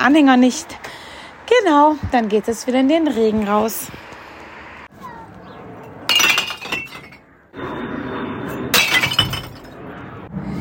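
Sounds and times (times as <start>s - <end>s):
speech: 0.0s - 4.0s
glass bottles thrown into bottle bank: 6.1s - 7.2s, 8.8s - 9.7s.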